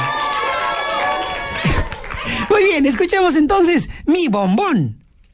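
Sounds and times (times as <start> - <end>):
audience applauding: 0.0 - 3.1
speech: 2.8 - 5.0.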